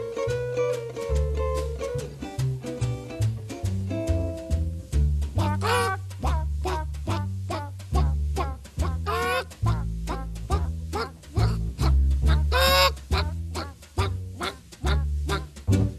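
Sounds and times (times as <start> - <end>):
deep pulsing bass line: 1.2 - 15.9
jazz imitation of hens clucking in a henhouse: 5.4 - 15.6.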